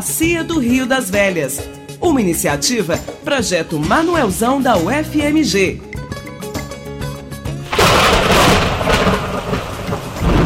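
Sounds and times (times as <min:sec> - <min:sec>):
speech: 0:00.0 - 0:06.0
music: 0:00.0 - 0:10.4
heavy rain: 0:07.7 - 0:10.4
thunder rumbling: 0:07.7 - 0:10.4.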